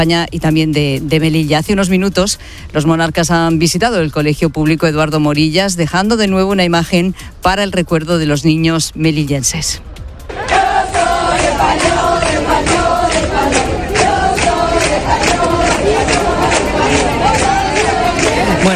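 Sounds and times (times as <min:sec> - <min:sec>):
speech: 0:00.0 - 0:09.9
large street crowd chanting during a royal visit to Melilla: 0:10.3 - 0:18.7.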